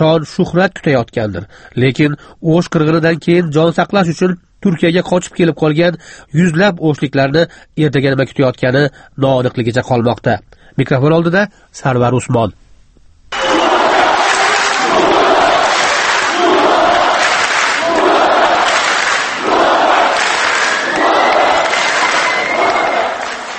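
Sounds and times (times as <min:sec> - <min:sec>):
speech: 0:00.0 - 0:12.6
Turkish TV talent show audience chanting and cheering: 0:13.3 - 0:23.5.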